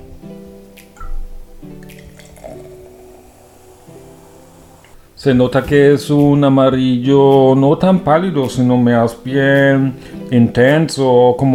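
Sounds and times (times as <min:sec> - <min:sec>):
Sekt sparkling wine pouring into a glass: 0:00.9 - 0:05.3
speech: 0:05.2 - 0:11.5.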